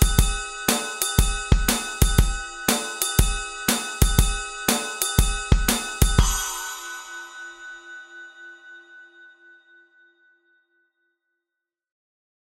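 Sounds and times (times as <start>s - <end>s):
swing drums: 0.0s - 6.8s.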